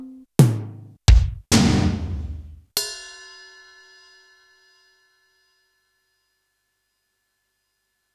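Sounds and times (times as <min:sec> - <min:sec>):
Roland U110 rock drums: 0:00.4 - 0:02.6.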